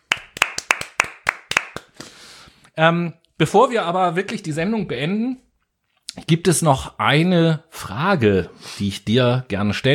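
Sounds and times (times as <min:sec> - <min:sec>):
hands clapping: 0:00.0 - 0:02.2
speech: 0:02.8 - 0:05.4, 0:06.2 - 0:09.9.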